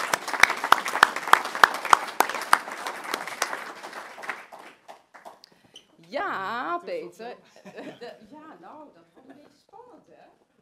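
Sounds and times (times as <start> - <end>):
audience applause: 0.0 - 5.4
speech: 6.2 - 10.4.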